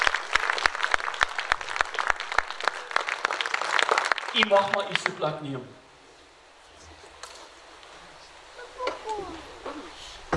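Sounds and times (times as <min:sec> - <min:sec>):
audience clapping hands: 0:00.0 - 0:05.4
speech: 0:04.4 - 0:05.8.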